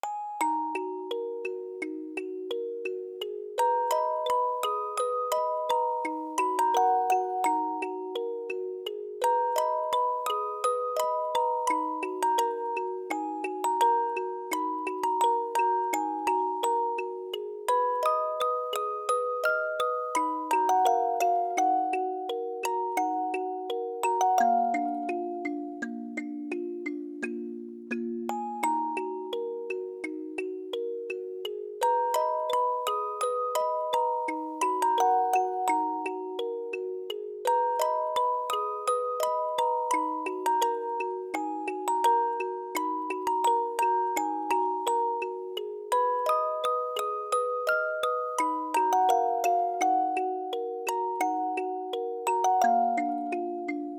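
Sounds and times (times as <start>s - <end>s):
music box: 0.0s - 53.9s.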